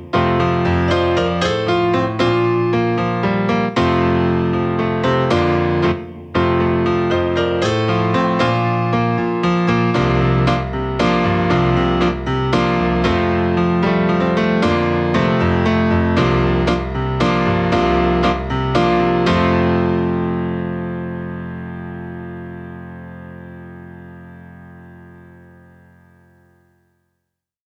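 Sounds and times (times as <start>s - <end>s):
grand piano sound from a keyboard: 0.0s - 26.8s.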